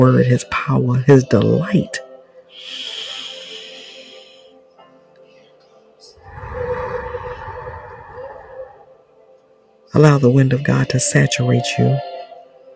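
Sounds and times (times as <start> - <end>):
speech: 0.0 - 2.0, 10.0 - 12.1
slow exhale through the mouth during a guided prayer breathing exercise: 2.6 - 4.5, 6.2 - 9.0.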